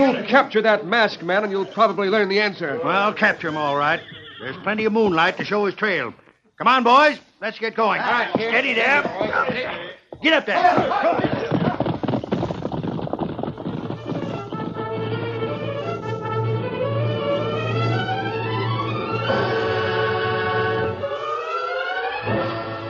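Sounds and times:
speech: 0.0 - 11.4
rapid clip-clop hoofbeats of horses: 2.9 - 5.4, 8.0 - 20.8
loud orchestral music: 15.0 - 22.8.

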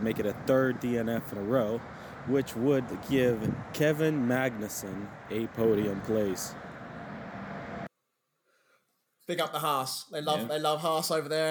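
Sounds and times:
speech: 0.0 - 6.7, 9.3 - 11.4
road traffic passing: 0.0 - 7.9.

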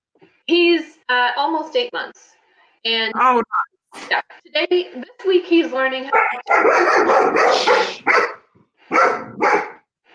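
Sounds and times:
speech: 0.5 - 8.3
alert dog barking: 6.1 - 9.9.

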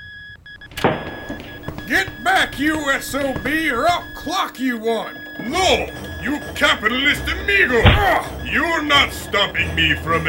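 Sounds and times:
electronic beeps: 0.5 - 8.6
sizing machine starting up and whirring: 0.7 - 8.5
speech: 1.9 - 10.2.

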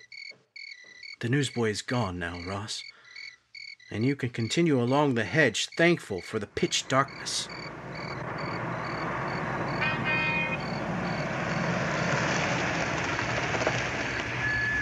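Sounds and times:
speech: 1.2 - 2.9, 3.9 - 7.7
car engine rumbling as the car pulls up: 6.4 - 14.8
road noise hiss: 6.6 - 14.8
brief high squeal: 6.9 - 11.7, 14.0 - 14.8.

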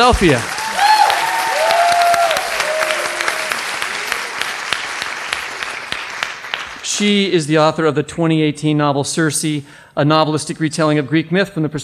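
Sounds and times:
speech: 0.0 - 0.5, 7.0 - 11.8
audience applause: 0.0 - 7.0.

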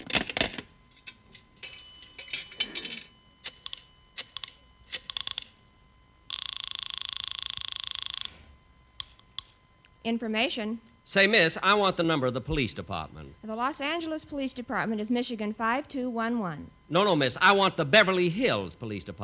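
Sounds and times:
telephone ringing tone: 1.6 - 9.7
speech: 10.0 - 19.2.

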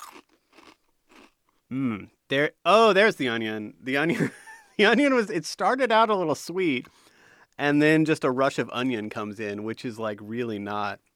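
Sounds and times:
crunching Hulk-colored Chex cereal eaten plain and dry: 0.0 - 1.4
speech: 1.7 - 11.1.

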